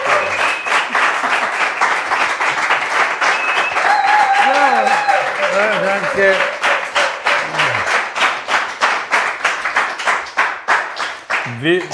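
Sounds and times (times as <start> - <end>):
audience applause: 0.0 - 11.9
faint low voice: 7.4 - 7.9
speech: 11.6 - 11.9.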